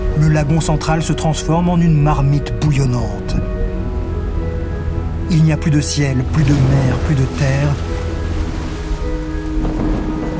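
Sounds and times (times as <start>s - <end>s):
speech: 0.4s - 3.6s, 5.3s - 7.9s
storm wind: 2.5s - 10.3s
storm rain: 6.3s - 10.3s.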